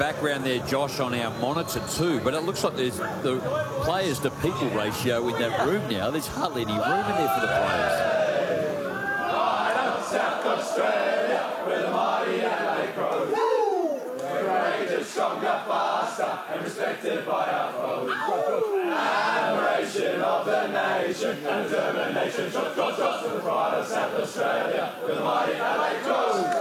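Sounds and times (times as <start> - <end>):
speech: 0.0 - 8.1, 15.1 - 26.5
players singing team song: 0.0 - 26.5
whoops and cheers: 13.3 - 14.2, 18.1 - 19.0.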